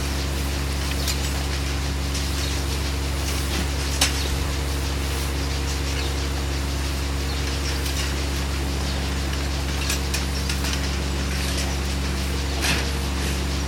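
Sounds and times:
goats feeding in a stall inside a large barn: 0.0s - 13.6s
milking equipment running: 0.0s - 13.6s.

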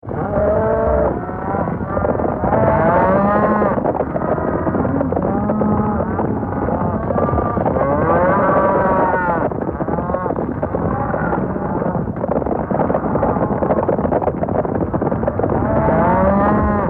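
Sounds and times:
stampeding cattle herd rumble of hooves: 0.0s - 16.8s.

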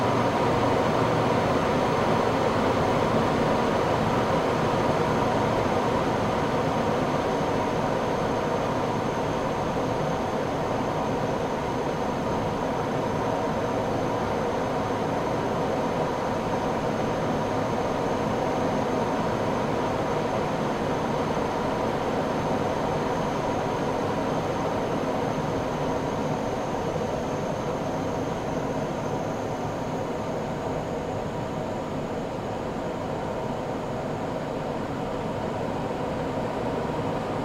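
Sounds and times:
Gloster Meteor F Mk8 fighter jet flying, interior: 0.0s - 37.4s.

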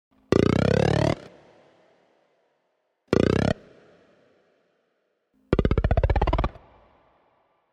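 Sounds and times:
abstract electronic frog croaks: 0.3s - 1.3s, 3.1s - 3.7s, 5.5s - 7.0s.

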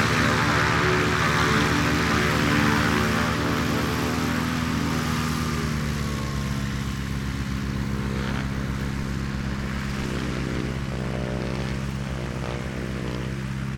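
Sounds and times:
light propeller aircraft queuing up to take off on a small airfield runway: 0.0s - 13.7s.

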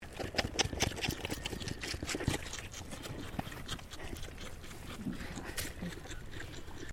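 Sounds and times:
Boer goat kid bottle feeding: 0.0s - 6.9s.

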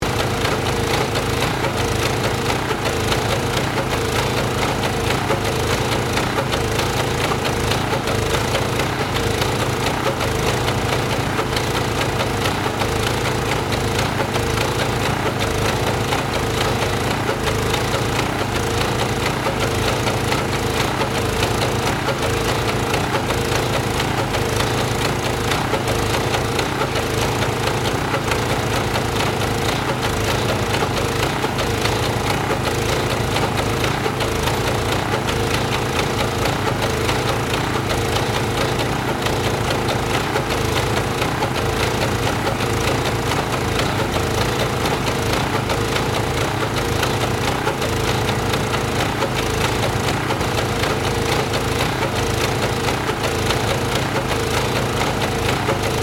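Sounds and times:
industrial asphalt machine: 0.0s - 56.0s.

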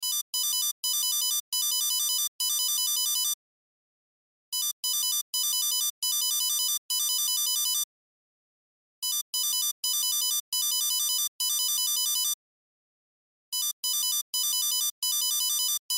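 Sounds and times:
cell phone ringtone: 0.0s - 3.4s, 4.6s - 7.9s, 9.1s - 12.4s, 13.6s - 15.9s.

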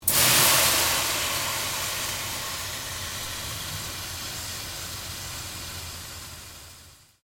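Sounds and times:
water sizzling in a very hot pan: 0.0s - 7.2s.

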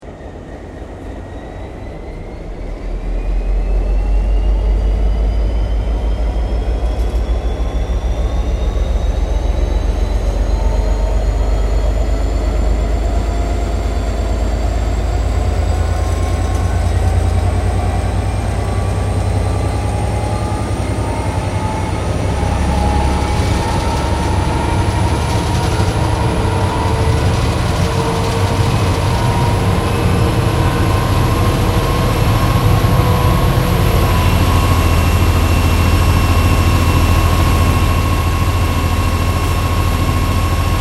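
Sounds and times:
T Class diesel locomotive powering up: 0.0s - 40.7s.

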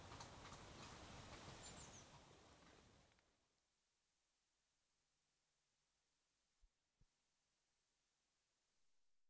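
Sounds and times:
horse hooves clopping: 0.0s - 3.2s.

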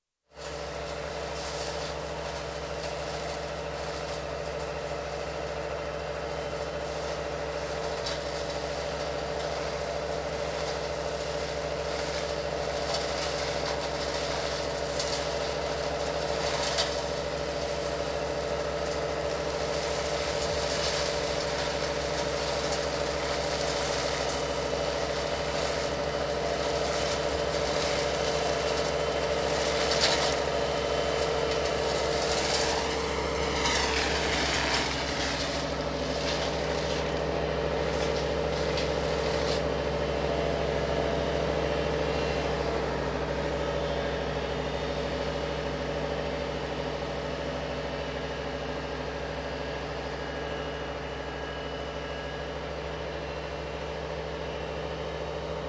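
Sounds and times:
hedge being cut by hedgecutter: 0.3s - 46.4s
tractor with hedgecutter: 0.3s - 55.6s.

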